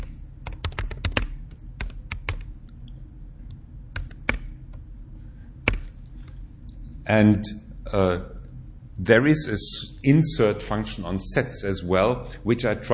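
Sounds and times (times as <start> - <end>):
typing on a computer keyboard: 0.0 - 2.8, 4.0 - 4.8, 5.6 - 6.4
low hum: 0.0 - 12.9
speech: 7.1 - 8.4, 9.0 - 12.9.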